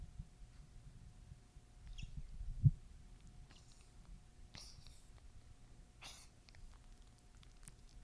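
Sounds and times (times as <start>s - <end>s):
low steady hum: 0.0s - 8.0s
dog coughing: 3.5s - 5.1s, 6.0s - 6.4s.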